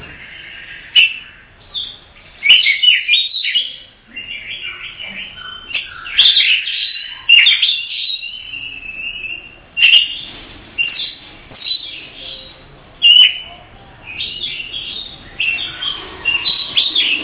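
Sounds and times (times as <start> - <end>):
Oriental magpie-robin whistling song: 0.2 - 17.2.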